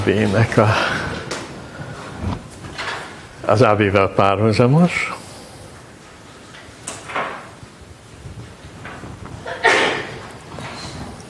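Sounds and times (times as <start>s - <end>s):
speech: 0.0s - 1.0s, 3.5s - 5.2s
sneeze: 9.5s - 10.2s.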